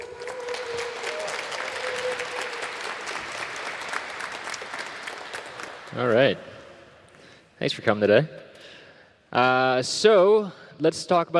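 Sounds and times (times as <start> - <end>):
audience applause: 0.0 - 6.7
speech: 6.0 - 6.5, 7.6 - 8.4, 9.3 - 11.3.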